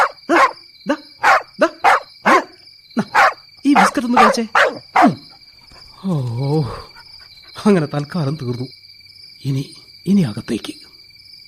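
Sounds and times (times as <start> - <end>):
puppy barking in a radio drama: 0.0 - 0.6, 1.2 - 5.4
speech: 4.0 - 5.2, 6.0 - 6.9, 7.6 - 8.8, 9.4 - 10.8.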